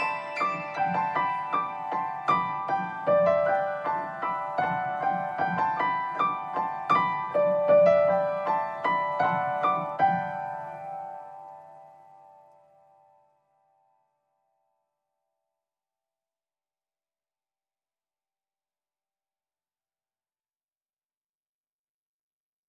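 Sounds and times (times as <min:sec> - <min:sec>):
sparkling piano: 0:00.0 - 0:14.6.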